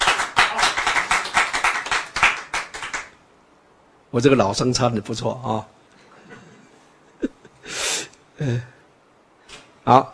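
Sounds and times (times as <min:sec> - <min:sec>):
hands clapping: 0:00.0 - 0:03.2
speech: 0:04.1 - 0:05.8, 0:08.4 - 0:08.8, 0:09.9 - 0:10.1.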